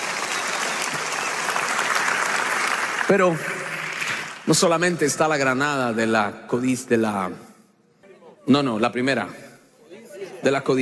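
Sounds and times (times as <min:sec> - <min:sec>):
audience applause: 0:00.0 - 0:04.6
speech: 0:03.1 - 0:03.6, 0:04.5 - 0:07.5, 0:08.5 - 0:09.4, 0:10.4 - 0:10.7.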